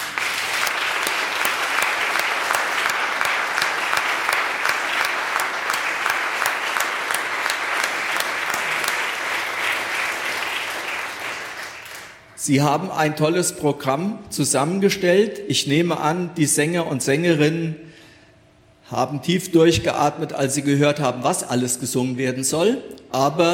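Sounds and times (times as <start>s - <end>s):
audience applause: 0.0s - 12.2s
speech: 12.5s - 17.9s, 18.9s - 23.5s.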